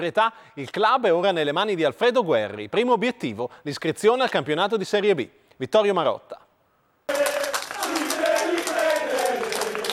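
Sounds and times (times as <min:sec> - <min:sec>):
speech: 0:00.0 - 0:06.4
crowd applause: 0:07.1 - 0:09.9.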